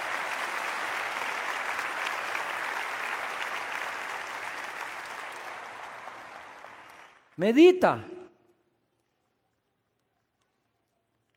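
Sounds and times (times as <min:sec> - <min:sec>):
audience applause: 0:00.0 - 0:08.1
speech: 0:07.4 - 0:08.1.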